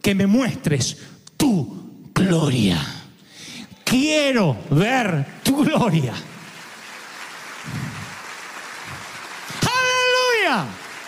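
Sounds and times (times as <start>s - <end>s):
speech: 0.0s - 3.0s, 3.9s - 6.3s, 10.5s - 10.8s
audience applauding: 4.7s - 11.0s.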